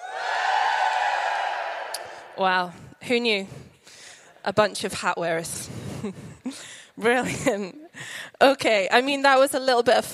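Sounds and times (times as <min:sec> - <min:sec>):
audience cheering: 0:00.0 - 0:02.4
speech: 0:02.4 - 0:03.7, 0:04.4 - 0:07.8, 0:08.4 - 0:10.1.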